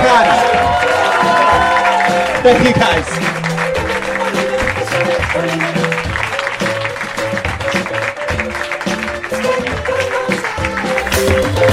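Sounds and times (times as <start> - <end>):
audience cheering: 0.0 - 7.2
audience applause: 0.0 - 11.7
speech: 2.4 - 3.4.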